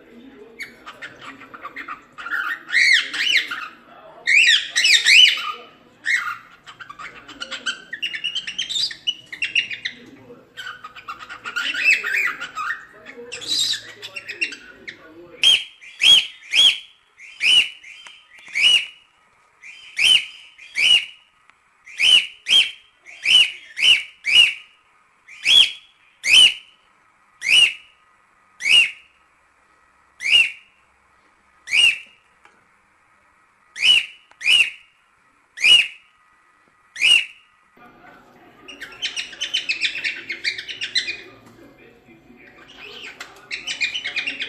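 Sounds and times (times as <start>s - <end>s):
cockatiel whistling: 4.3s - 10.0s, 10.6s - 19.0s, 19.6s - 21.2s, 21.9s - 24.7s, 25.3s - 26.7s, 27.4s - 27.9s, 28.6s - 29.1s, 30.2s - 30.7s, 31.7s - 32.2s, 33.8s - 34.9s, 35.6s - 36.0s, 37.0s - 37.4s, 38.6s - 41.4s, 42.5s - 44.4s.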